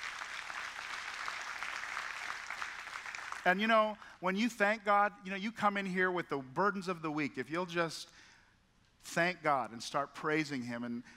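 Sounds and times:
crowd of people clapping: 0.0s - 3.6s
speech: 3.4s - 8.2s, 9.0s - 11.1s.

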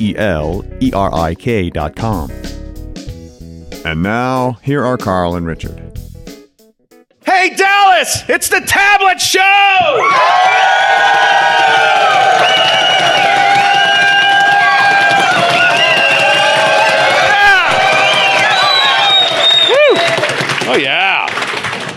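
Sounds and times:
speech: 0.0s - 2.6s, 3.8s - 5.8s, 7.4s - 12.6s
large audience cheering at Cowboys Stadium in Dallas: 9.6s - 21.9s
whoops and shouted voices from the audience: 9.7s - 20.4s.

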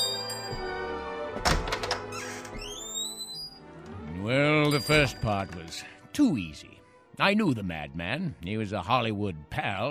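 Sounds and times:
sustained tonal backdrop: 0.0s - 9.9s
heavy wooden door thunk: 1.3s - 2.6s
thin rising creak: 2.0s - 3.6s
speech: 4.8s - 9.9s.

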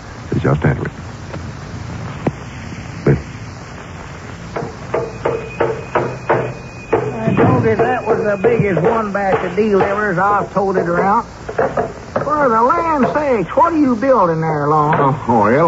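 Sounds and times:
speech: 0.4s - 1.2s, 3.0s - 3.3s, 7.6s - 15.6s
hammer striking nails: 4.6s - 12.3s.

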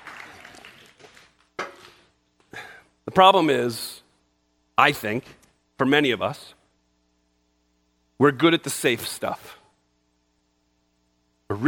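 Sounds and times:
audience clapping: 0.0s - 1.5s
speech: 3.2s - 3.9s, 4.8s - 6.6s, 8.2s - 9.6s.

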